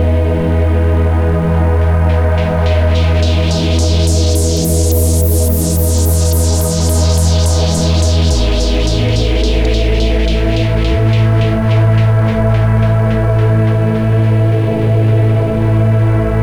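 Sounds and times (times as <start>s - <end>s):
ambient sound: 0.1s - 16.4s
Rife clarity kick drum: 8.3s - 14.7s.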